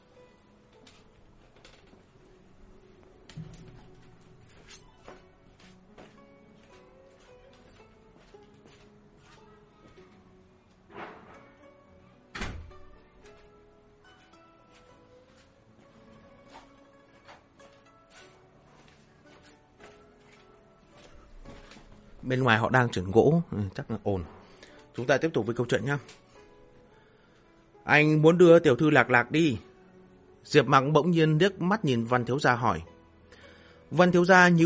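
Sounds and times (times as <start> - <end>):
door being closed: 3.3 - 4.2, 10.9 - 11.6, 12.3 - 13.0
speech: 22.2 - 24.4, 25.0 - 26.2, 27.9 - 29.7, 30.4 - 32.9, 33.9 - 34.6.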